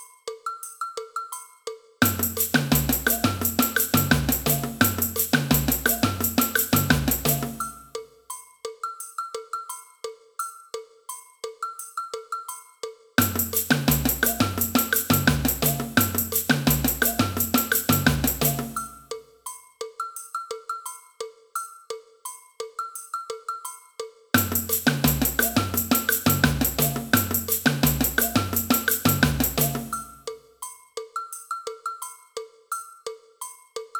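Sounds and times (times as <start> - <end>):
cowbell in a samba band: 0.0 - 33.9
agogo bell in a samba band: 0.6 - 9.9, 13.2 - 21.0, 24.4 - 32.2.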